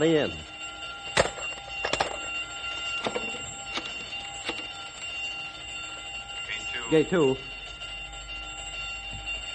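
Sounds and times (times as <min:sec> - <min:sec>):
speech: 0:00.0 - 0:00.5, 0:06.9 - 0:07.5
continuous alarm tone: 0:00.0 - 0:09.5.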